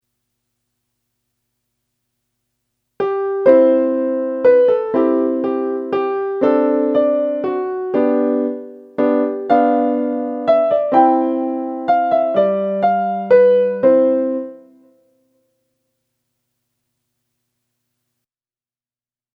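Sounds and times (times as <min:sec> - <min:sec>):
waltz music: 0:03.1 - 0:14.7.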